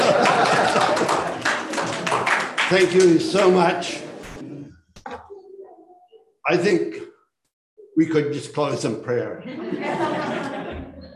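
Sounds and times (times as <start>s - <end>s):
laughter: 0.0s - 2.3s, 9.4s - 11.1s
audience clapping: 0.0s - 3.6s
speech: 2.7s - 4.0s, 6.5s - 7.1s, 8.0s - 10.4s.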